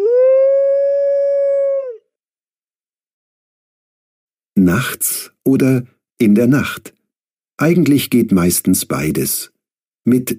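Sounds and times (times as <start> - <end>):
wolf howling: 0.0 - 2.1
speech: 4.7 - 7.0, 7.6 - 10.3.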